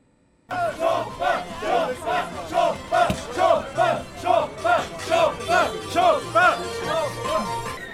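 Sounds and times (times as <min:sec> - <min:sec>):
protest crowd shouting and chanting: 0:00.5 - 0:07.6
low rhythmic thumping: 0:00.8 - 0:06.6.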